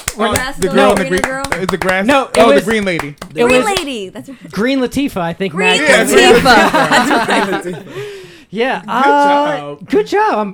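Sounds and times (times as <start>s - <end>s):
applause: 0.0s - 3.9s
speech: 0.2s - 10.5s
laughter: 5.9s - 8.0s.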